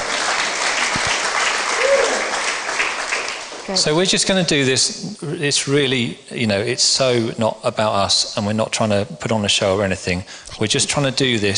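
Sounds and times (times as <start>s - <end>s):
audience applause: 0.0s - 4.2s
speech: 3.7s - 11.5s.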